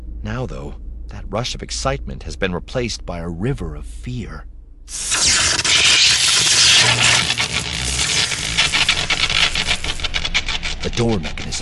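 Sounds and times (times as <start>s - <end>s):
speech: 0.3s - 5.6s, 10.8s - 11.6s
electrical sizzling and static arcing: 4.9s - 11.6s.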